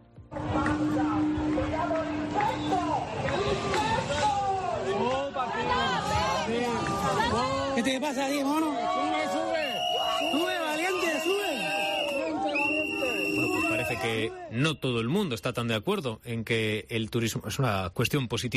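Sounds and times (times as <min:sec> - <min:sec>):
protesters shouting at a demonstration: 0:00.5 - 0:14.5
speech: 0:05.0 - 0:08.9, 0:14.0 - 0:18.5.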